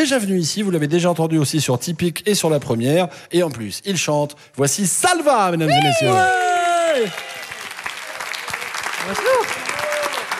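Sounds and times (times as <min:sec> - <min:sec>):
speech: 0:00.0 - 0:07.3, 0:09.1 - 0:09.5
audience applause: 0:05.7 - 0:10.3.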